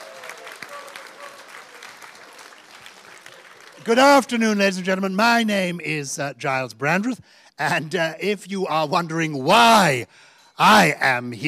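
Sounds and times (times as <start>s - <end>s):
audience applause for sponsors: 0.0s - 4.8s
speech: 3.8s - 11.4s.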